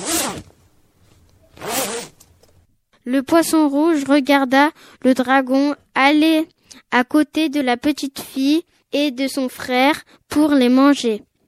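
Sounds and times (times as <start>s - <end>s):
zipper pulls zipping up a space suit: 0.0s - 0.5s, 1.2s - 2.3s
speech: 3.1s - 11.3s.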